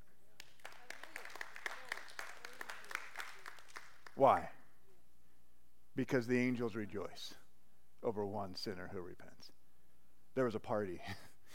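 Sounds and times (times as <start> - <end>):
audience hand clapping applause: 0.4 - 4.5
speech: 4.2 - 4.6, 6.0 - 7.4, 8.0 - 9.6, 10.4 - 11.3.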